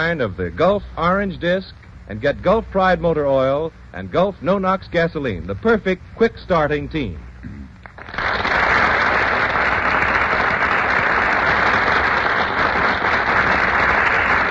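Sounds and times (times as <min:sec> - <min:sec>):
speech: 0:00.0 - 0:07.6
studio audience applause: 0:07.8 - 0:14.5.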